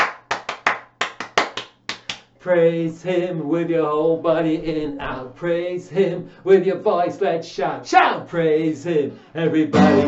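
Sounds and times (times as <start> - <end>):
church congregation clapping hands: 0.0 - 2.3
speech: 2.4 - 10.0.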